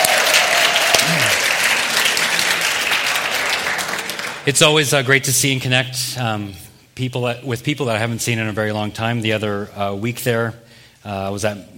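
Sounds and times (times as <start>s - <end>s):
church audience hand clapping: 0.0s - 4.6s
speech: 4.5s - 11.7s.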